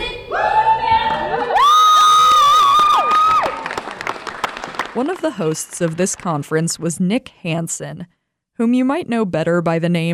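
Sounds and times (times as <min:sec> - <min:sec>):
students cheering and shouting in a school gymnasium: 0:00.3 - 0:03.9
speech: 0:05.3 - 0:10.1.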